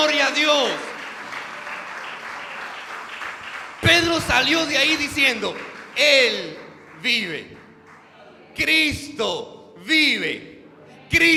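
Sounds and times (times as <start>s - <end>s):
audience applauding loudly: 0.0s - 8.1s
speech: 4.1s - 7.6s, 8.6s - 10.5s, 11.1s - 11.3s.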